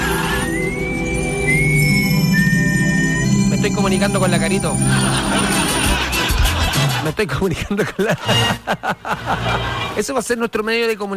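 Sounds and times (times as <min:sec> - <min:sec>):
characteristic whistle used as a call signal: 0:00.0 - 0:03.6
speech: 0:03.9 - 0:05.7, 0:07.0 - 0:11.1
laughter: 0:04.5 - 0:10.0.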